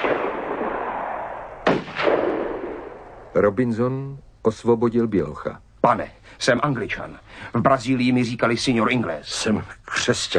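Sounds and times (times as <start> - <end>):
gunshot fired at a boat: 0.0 - 3.2
speech: 3.4 - 10.3.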